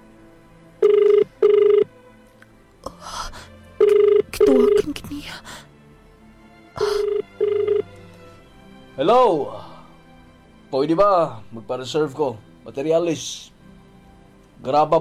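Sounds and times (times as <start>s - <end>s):
telephone ringback as a call is placed: 0.8s - 1.9s, 3.8s - 4.8s, 6.8s - 7.9s
speech: 9.1s - 9.6s, 10.7s - 13.5s, 14.6s - 14.9s.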